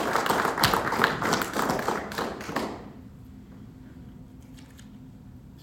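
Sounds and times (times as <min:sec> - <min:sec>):
audience applause: 0:00.0 - 0:02.9.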